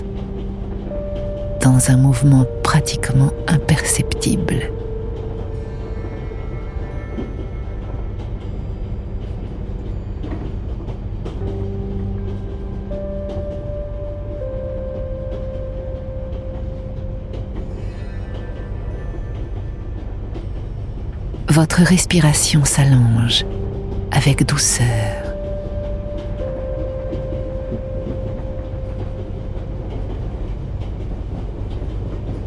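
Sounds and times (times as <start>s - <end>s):
train rolling on rails: 0.0s - 32.4s
speech: 1.6s - 4.8s, 21.6s - 23.6s, 24.2s - 25.2s.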